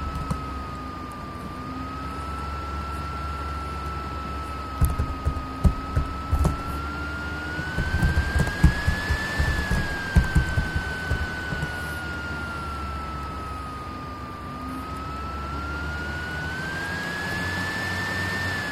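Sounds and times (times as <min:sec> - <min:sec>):
laptop fan: 0:00.0 - 0:18.7.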